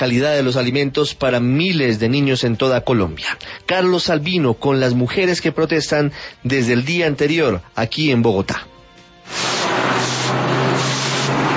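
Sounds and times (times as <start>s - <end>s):
speech: 0.0s - 8.7s
broom sweeping out rainwater in Bogotá: 9.3s - 11.5s.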